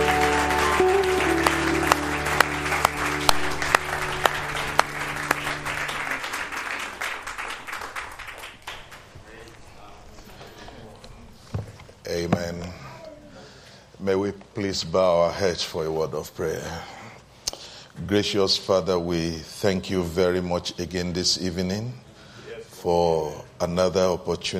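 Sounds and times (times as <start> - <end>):
audience hand clapping: 0.0 - 9.7
speech: 14.8 - 17.0, 18.1 - 22.1, 22.8 - 24.5.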